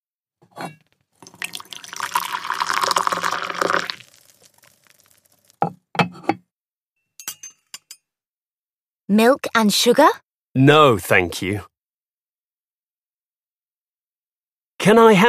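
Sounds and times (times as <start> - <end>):
speech: 0.6 - 0.8, 9.1 - 11.7, 14.8 - 15.2
china cups clinking: 1.2 - 4.0, 7.2 - 8.0
tea being poured into cups: 1.2 - 5.6.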